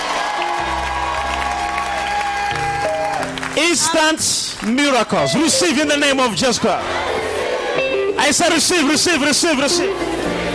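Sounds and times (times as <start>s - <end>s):
audience clapping: 0.0s - 6.7s
speech: 3.6s - 7.3s, 8.2s - 10.4s.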